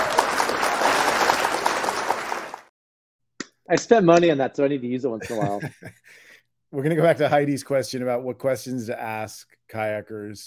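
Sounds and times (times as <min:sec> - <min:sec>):
audience applause welcoming a segment host: 0:00.0 - 0:02.7
speech: 0:03.7 - 0:10.4
laughter: 0:05.2 - 0:07.7.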